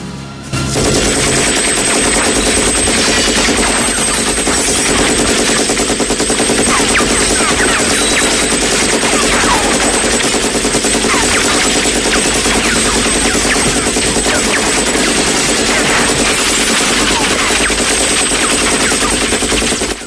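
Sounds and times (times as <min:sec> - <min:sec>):
machine gun fire into computers and screens: 0:00.7 - 0:20.0.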